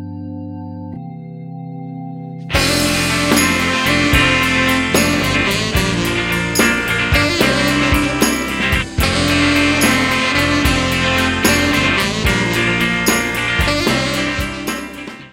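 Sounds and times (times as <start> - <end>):
rock music: 2.5 - 15.3.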